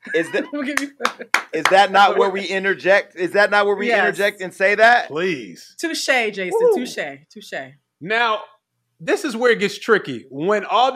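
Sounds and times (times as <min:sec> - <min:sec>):
laughter-like vocal sounds: 0:00.0 - 0:02.4
overlapping voices: 0:00.0 - 0:02.7, 0:03.4 - 0:04.3
speech: 0:00.1 - 0:10.9
sharp hand claps: 0:00.7 - 0:02.1.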